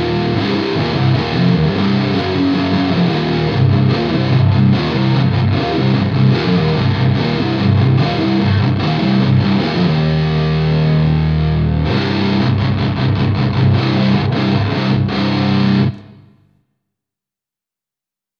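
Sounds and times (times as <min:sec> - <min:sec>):
grunge music: 0:00.0 - 0:16.4.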